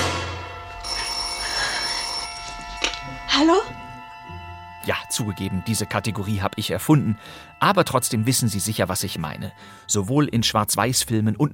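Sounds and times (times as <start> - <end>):
telephone ringing: 0.6 - 4.0
speech: 3.4 - 3.8, 4.8 - 11.5.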